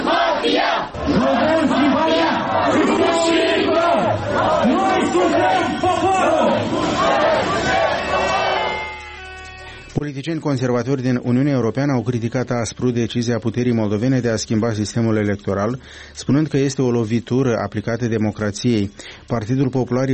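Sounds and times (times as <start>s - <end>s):
large street protest crowd chanting and shouting: 0.0s - 9.8s
speech: 10.0s - 20.1s.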